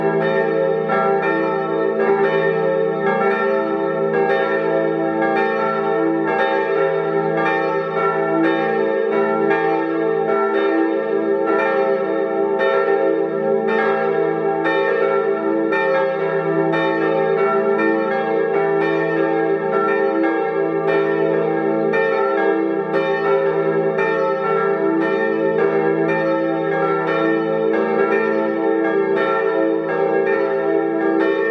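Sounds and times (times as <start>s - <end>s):
bells ringing: 0.0s - 31.4s.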